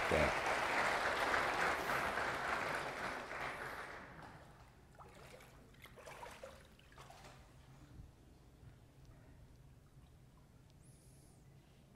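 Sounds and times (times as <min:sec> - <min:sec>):
crowd applauding: 0:00.0 - 0:04.6
faint room noise: 0:00.0 - 0:11.9.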